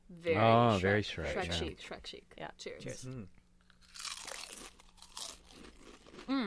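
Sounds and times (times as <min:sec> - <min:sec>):
speech: 0:00.1 - 0:03.4, 0:06.3 - 0:06.4
wasabi-flavoured chip crunching: 0:03.6 - 0:06.4.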